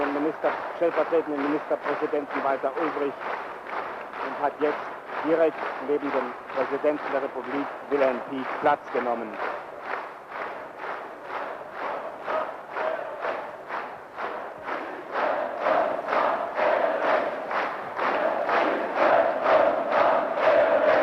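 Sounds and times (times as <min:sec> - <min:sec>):
speech: 0:00.3 - 0:03.7, 0:04.3 - 0:09.5
large crowd chanting a greeting: 0:11.0 - 0:21.0.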